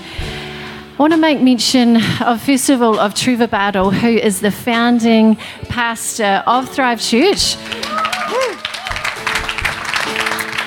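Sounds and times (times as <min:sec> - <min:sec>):
speech: 0:01.0 - 0:08.6
audience clapping: 0:07.6 - 0:10.6.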